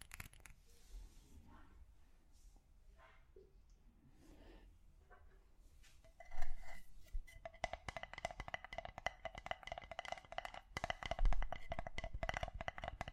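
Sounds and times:
soft scraping and rustling: 0.2 - 3.3, 5.1 - 7.5
tapping on different objects: 7.4 - 13.1.

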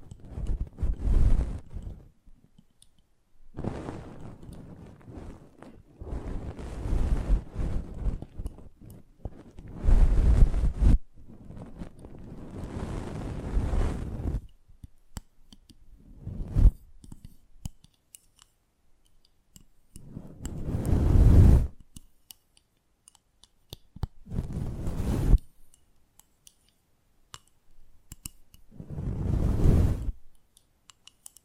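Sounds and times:
scratching, brushing and rubbing close to an ASMR mic: 0.0 - 2.1, 3.6 - 14.4, 16.1 - 18.6, 20.0 - 22.5, 24.2 - 25.7, 28.2 - 30.4
small clicks and taps: 1.6 - 3.1, 14.4 - 15.9, 17.0 - 20.9, 21.8 - 24.2, 25.3 - 28.7, 30.3 - 31.4.

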